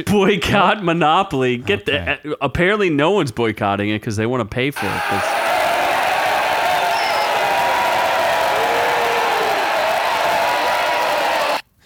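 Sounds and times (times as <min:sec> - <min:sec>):
speech: 0:00.0 - 0:05.4
crowd booing and heckling sound effect: 0:04.8 - 0:11.6.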